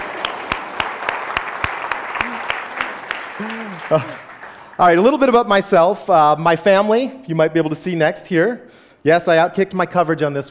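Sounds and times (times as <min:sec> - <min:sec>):
audience applause: 0:00.0 - 0:05.2
speech: 0:03.4 - 0:10.5.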